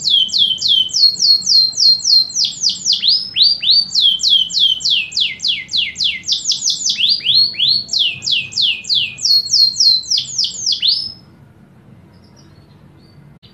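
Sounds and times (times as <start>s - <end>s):
canary singing descending whistled notes: 0.0s - 11.3s.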